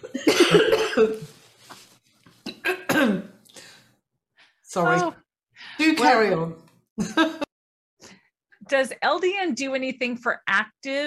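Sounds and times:
person coughing from choking on a glass of water: 0.0 - 1.3, 2.5 - 3.4
speech: 4.8 - 5.2, 6.0 - 7.1, 8.7 - 11.0.

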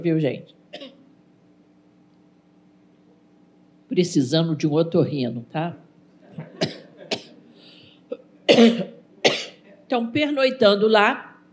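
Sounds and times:
speech: 0.0 - 0.9, 3.9 - 5.8, 8.5 - 8.9, 9.9 - 11.3
coughing from an allergic tickle in the throat: 6.4 - 7.4, 8.1 - 9.8
throat clearing: 8.1 - 9.7.

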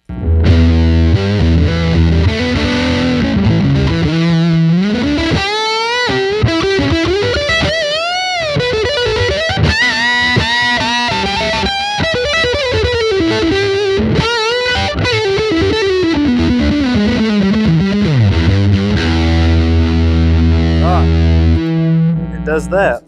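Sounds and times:
electric guitar through Big Muff fuzz pedal: 0.0 - 23.0.

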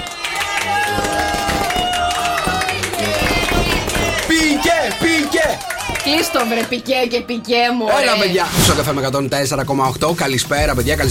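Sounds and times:
applause: 0.0 - 6.8
speech: 6.1 - 11.0.

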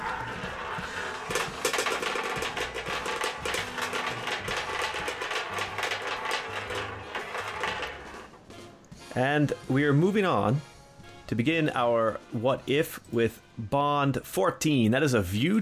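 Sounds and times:
roulette wheel spinning: 0.0 - 8.5
speech: 9.2 - 10.7, 11.3 - 15.5.

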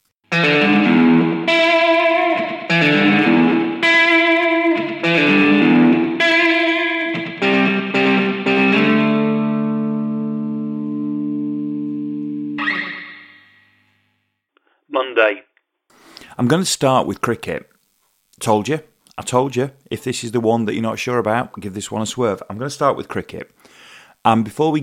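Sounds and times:
twangy guitar music: 0.3 - 13.8
speech: 16.5 - 17.7, 18.4 - 24.8.

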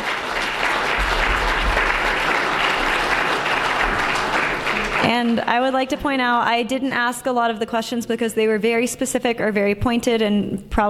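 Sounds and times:
audience applause: 0.0 - 5.6
speech: 5.1 - 10.8.

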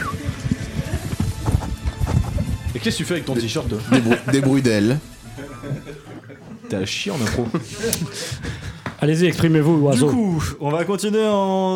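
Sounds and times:
horse pawing and stamping: 0.0 - 3.8
speech: 2.8 - 5.1, 6.7 - 11.7
laughter: 3.4 - 9.0.

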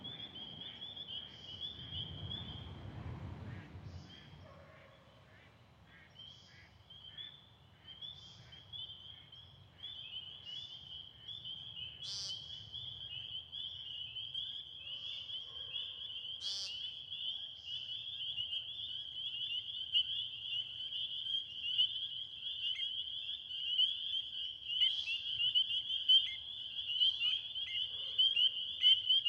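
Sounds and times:
spring peepers chorus: 0.0 - 2.8, 3.5 - 29.2.

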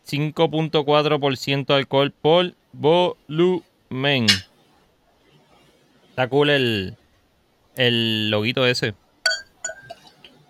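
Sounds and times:
speech: 0.1 - 4.5, 6.2 - 7.0, 7.8 - 9.0
Boquerón Brewing Company beer glass clinking: 9.3 - 10.2.

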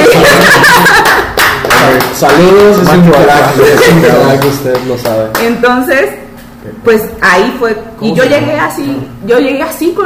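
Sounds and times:
chuckling and laughter: 0.0 - 1.2
crowd applause: 0.0 - 5.2
speech: 2.2 - 10.0.

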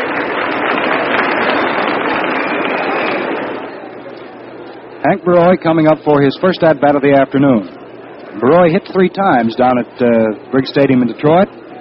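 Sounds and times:
stadium crowd applause: 0.0 - 3.8
speech: 5.0 - 11.6.

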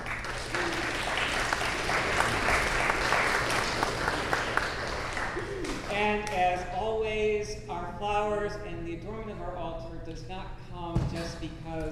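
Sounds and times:
audience applause: 0.0 - 5.9
speech: 6.0 - 11.9.

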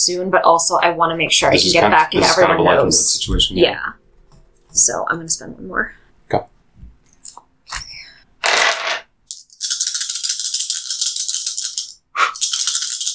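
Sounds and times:
speech: 0.0 - 4.0, 4.7 - 6.5
dice rattling in a cupped hand: 8.4 - 13.1.

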